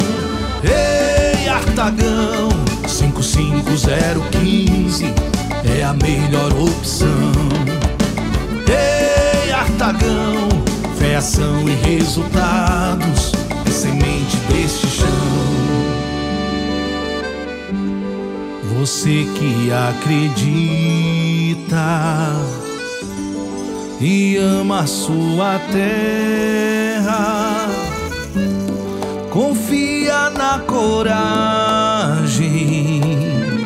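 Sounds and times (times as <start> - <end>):
jingle: 0.0 - 33.6.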